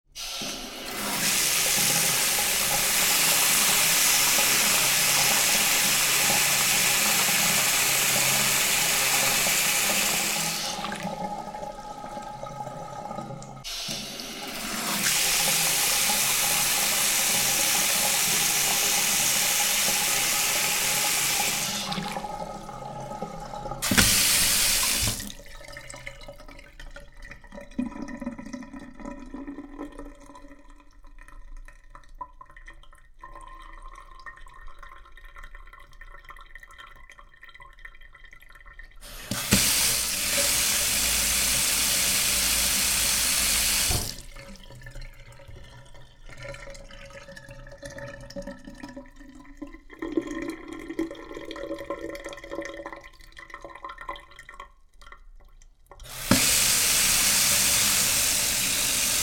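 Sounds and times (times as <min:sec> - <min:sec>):
powerful water from taps: 0:00.1 - 0:59.2
taps turned on and off: 0:23.8 - 0:25.3, 0:39.0 - 0:44.2, 0:56.0 - 0:59.2.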